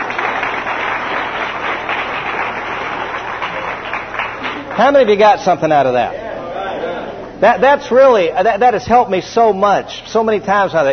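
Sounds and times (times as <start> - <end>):
audience applause: 0.0 - 5.2
speech: 4.8 - 6.2, 7.4 - 10.9.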